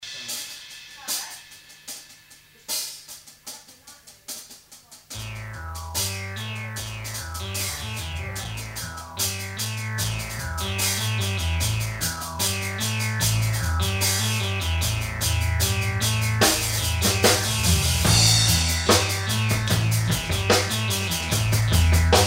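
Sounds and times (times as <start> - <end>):
musical riff: 5.2 - 22.2.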